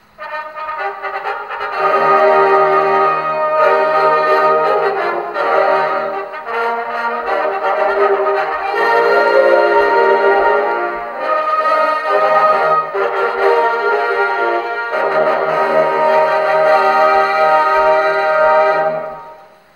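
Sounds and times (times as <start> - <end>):
fanfare: 0.0 - 19.7.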